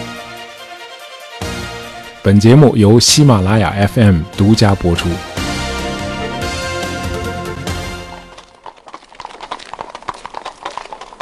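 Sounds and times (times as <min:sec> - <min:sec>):
speech: 0:02.2 - 0:05.3
horse hooves clip-clopping on a small square cobblestone street: 0:05.4 - 0:11.1.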